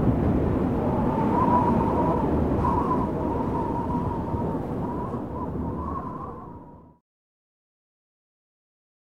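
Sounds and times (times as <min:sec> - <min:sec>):
heavy gusting wind in brush: 0:00.0 - 0:07.0.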